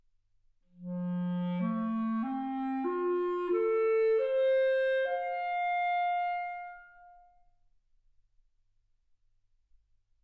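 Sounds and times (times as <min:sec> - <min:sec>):
clarinet: 0:00.7 - 0:07.4.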